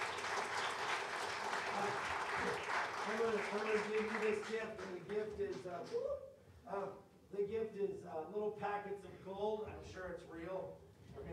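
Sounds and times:
audience clapping for a team at a church service: 0:00.0 - 0:06.0
speech: 0:03.1 - 0:11.3.

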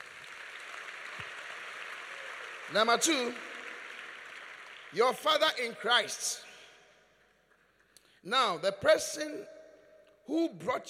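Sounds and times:
crowd clapping: 0:00.0 - 0:08.0
speech: 0:02.7 - 0:03.5, 0:04.9 - 0:06.4, 0:08.2 - 0:09.6, 0:10.3 - 0:10.8.

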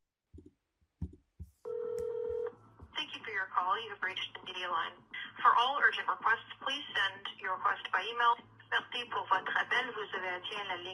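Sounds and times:
telephone ring tone: 0:01.7 - 0:02.5
speech: 0:03.5 - 0:10.9.

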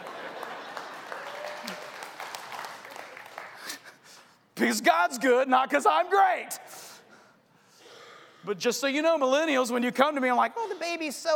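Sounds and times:
audience applause: 0:00.0 - 0:03.8
speech: 0:04.6 - 0:06.8, 0:08.4 - 0:11.3.

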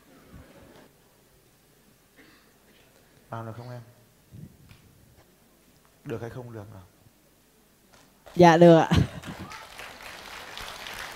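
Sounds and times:
speech: 0:03.3 - 0:04.0, 0:06.1 - 0:07.0, 0:08.4 - 0:09.1
audience clapping: 0:07.9 - 0:11.1.

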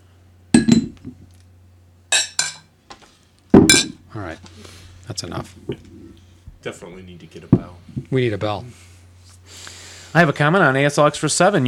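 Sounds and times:
low steady hum: 0:00.0 - 0:11.6
glasses clinking together in a toast: 0:00.6 - 0:01.0, 0:02.1 - 0:02.7, 0:03.7 - 0:04.0
speech: 0:04.1 - 0:06.0, 0:06.6 - 0:08.9, 0:09.5 - 0:11.6.

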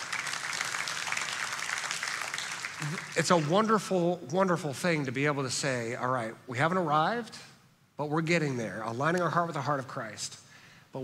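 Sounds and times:
audience applause: 0:00.0 - 0:03.6
speech: 0:02.8 - 0:11.0.

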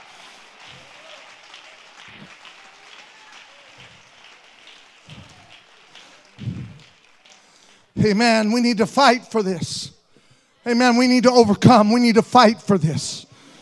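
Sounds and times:
audience clapping: 0:00.0 - 0:09.4
speech: 0:08.0 - 0:10.0, 0:10.6 - 0:13.3.

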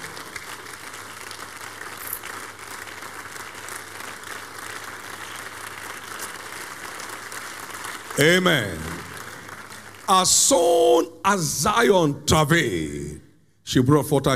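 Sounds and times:
crowd clapping in praise: 0:00.0 - 0:11.1
speech: 0:08.2 - 0:09.0, 0:10.1 - 0:14.3.

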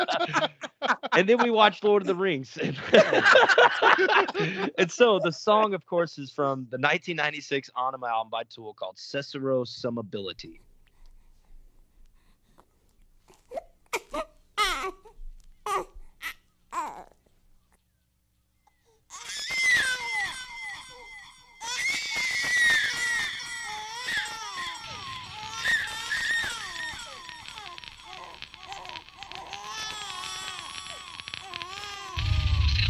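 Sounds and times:
speech: 0:00.0 - 0:00.6, 0:01.2 - 0:10.7
laughter: 0:00.0 - 0:05.4
baby babbling and crying: 0:13.4 - 0:17.2, 0:19.1 - 0:32.8.

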